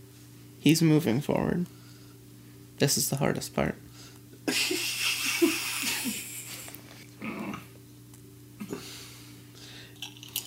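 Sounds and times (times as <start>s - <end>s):
speech: 0.6s - 1.8s, 2.8s - 3.9s
laughter: 4.5s - 6.8s
chips being chewed: 9.9s - 10.4s.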